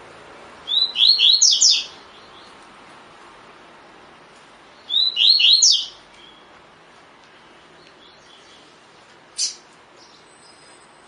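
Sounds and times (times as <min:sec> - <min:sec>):
double-collared seedeater whistled song: 0:00.7 - 0:02.5, 0:04.8 - 0:06.5, 0:09.4 - 0:11.0.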